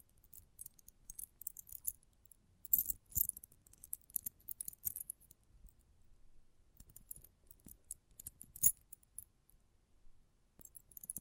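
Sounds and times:
metallic clinks and jingles: 0:00.2 - 0:02.0, 0:02.7 - 0:05.3, 0:06.8 - 0:09.2, 0:10.6 - 0:11.1.

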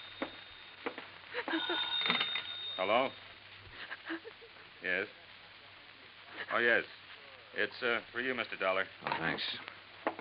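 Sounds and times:
telephone ringing: 0:00.0 - 0:03.2
speech: 0:02.8 - 0:03.2, 0:04.1 - 0:05.2, 0:06.5 - 0:09.8.

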